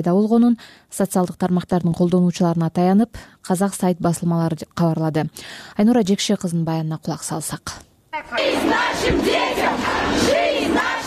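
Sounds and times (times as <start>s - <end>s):
speech: 0.0s - 11.0s
anti-war protesters chanting slogans on Moscow's Arbat: 8.2s - 11.0s.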